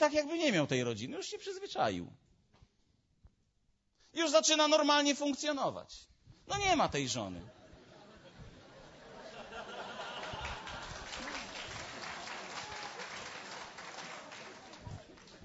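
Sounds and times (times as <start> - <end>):
speech: 0.0 - 2.3, 4.2 - 7.6
laughter: 7.5 - 15.4
audience applause: 9.3 - 15.4.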